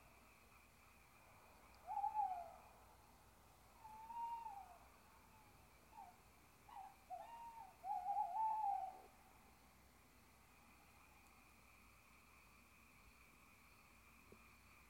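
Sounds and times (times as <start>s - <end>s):
low hiss: 0.0s - 14.8s
owl hooting: 1.8s - 2.7s, 3.8s - 9.1s.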